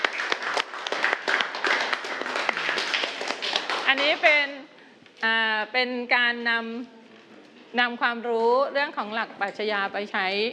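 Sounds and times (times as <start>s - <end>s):
class applauding: 0.0s - 4.3s
speech: 4.0s - 4.6s, 5.2s - 7.0s, 7.7s - 10.5s.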